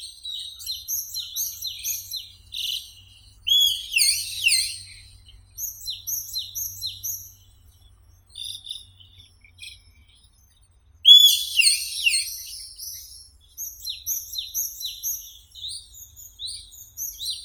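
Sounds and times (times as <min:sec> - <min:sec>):
bulbul Microscelis amaurotis calling: 0:03.5 - 0:05.2, 0:11.1 - 0:12.9.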